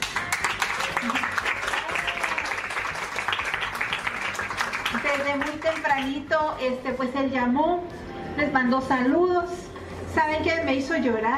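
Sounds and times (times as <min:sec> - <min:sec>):
audience applause: 0:00.0 - 0:06.1
speech: 0:05.3 - 0:11.3.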